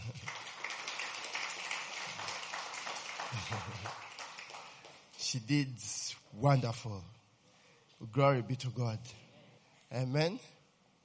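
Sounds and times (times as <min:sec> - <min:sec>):
audience hand clapping: 0:00.0 - 0:05.4
speech: 0:03.5 - 0:04.1, 0:05.3 - 0:07.2, 0:08.0 - 0:09.2, 0:09.9 - 0:10.6.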